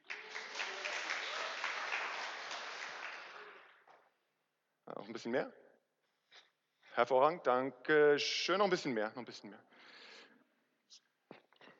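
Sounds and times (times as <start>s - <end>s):
audience applause: 0.0s - 3.8s
speech: 5.0s - 5.6s, 7.0s - 9.8s.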